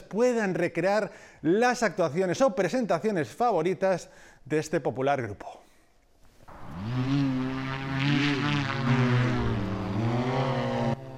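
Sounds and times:
speech: 0.1 - 5.6
engine of Blackfly vertical-takeoff flying vehicle: 6.5 - 11.1.

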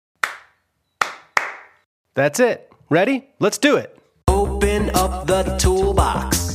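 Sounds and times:
hands clapping a rhythm: 0.2 - 1.8
speech: 2.2 - 6.4.

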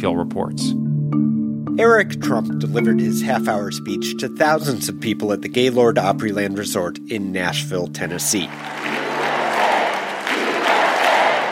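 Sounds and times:
speech: 0.0 - 9.0
conference crowd applauding: 8.4 - 11.4.

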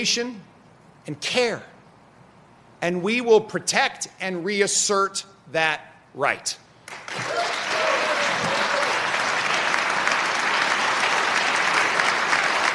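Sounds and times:
speech: 0.0 - 1.7, 2.8 - 6.6
standing ovation applause in legislative chamber: 6.9 - 12.7.

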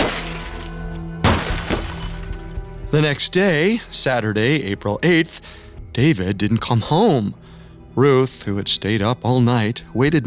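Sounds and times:
car window glass smashing: 0.0 - 2.9
speech: 3.0 - 10.2.

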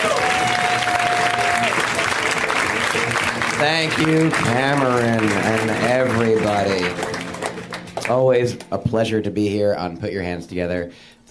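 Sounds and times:
live audience applause for a comedian: 0.0 - 8.4
speech: 3.6 - 7.2, 8.1 - 11.2.

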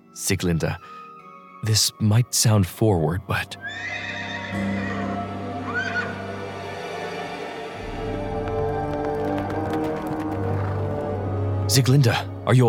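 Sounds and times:
speech: 0.2 - 1.0, 1.6 - 5.0, 11.7 - 12.6
horse whinnying: 3.6 - 6.2
horse hoofbeats approaching from outside: 7.8 - 11.5.

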